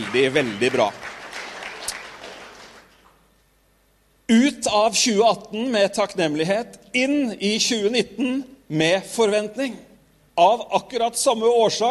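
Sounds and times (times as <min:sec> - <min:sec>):
crowd clapping: 0:00.0 - 0:03.2
speech: 0:00.1 - 0:01.1, 0:04.3 - 0:11.8.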